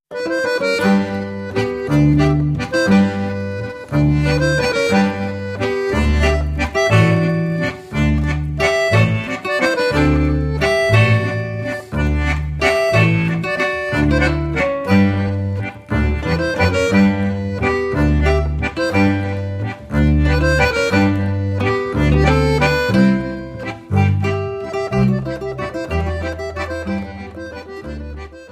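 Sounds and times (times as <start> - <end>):
landler dance music: 0.1 - 28.4.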